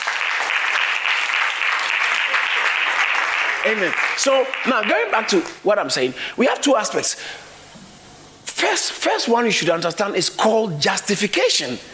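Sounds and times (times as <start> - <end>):
audience clapping: 0.0 - 5.6
speech: 3.6 - 7.5, 8.6 - 11.9.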